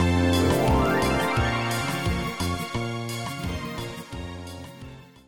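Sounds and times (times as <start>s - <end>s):
alto tone in F minor: 0.2s - 3.0s.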